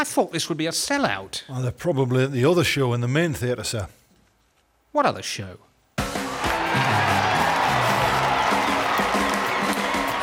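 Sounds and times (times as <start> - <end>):
speech: 0.0 - 4.0, 4.9 - 5.7
crowd applauding: 6.0 - 10.2
whoops and raised voices: 6.2 - 10.2.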